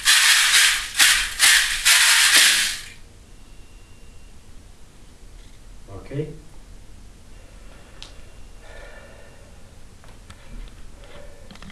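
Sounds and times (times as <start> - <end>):
march music: 0.0 - 3.0.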